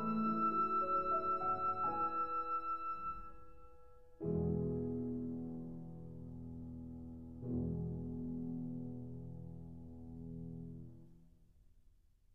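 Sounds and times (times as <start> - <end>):
flute and piano lullaby: 0.0 - 9.1.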